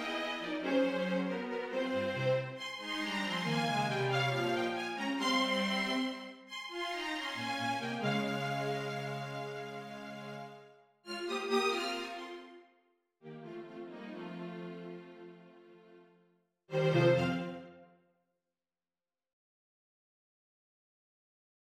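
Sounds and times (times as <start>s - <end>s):
string quartet: 0.0s - 10.5s, 11.1s - 12.5s, 13.3s - 16.0s, 16.7s - 17.7s.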